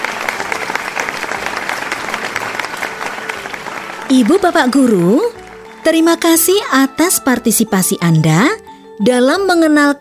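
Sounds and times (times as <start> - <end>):
applause: 0.0 - 6.7
speech: 4.1 - 10.0.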